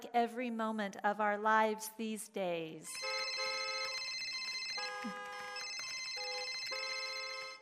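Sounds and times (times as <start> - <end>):
speech: 0.1 - 3.1
cell phone ringtone electronic melody: 3.0 - 7.5.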